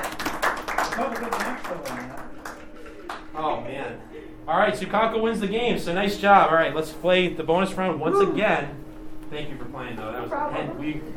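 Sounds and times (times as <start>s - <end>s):
round of applause: 0.0s - 3.4s
speech: 1.0s - 2.4s, 3.4s - 11.1s.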